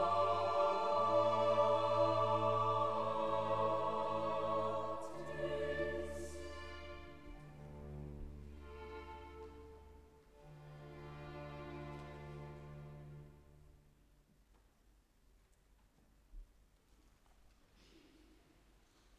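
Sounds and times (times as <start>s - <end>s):
requiem: 0.0s - 13.7s.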